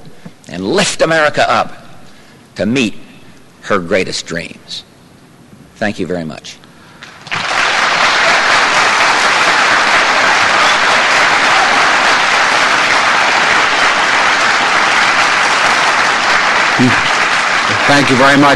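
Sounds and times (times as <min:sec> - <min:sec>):
speech: 0:00.5 - 0:01.8, 0:02.6 - 0:03.0, 0:03.6 - 0:04.9, 0:05.8 - 0:06.6, 0:16.8 - 0:17.1, 0:17.9 - 0:18.5
audience applause: 0:07.0 - 0:18.5.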